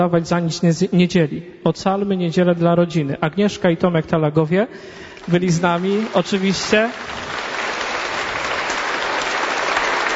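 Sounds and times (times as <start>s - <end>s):
speech: 0.0s - 7.4s
audience applause: 5.2s - 10.1s.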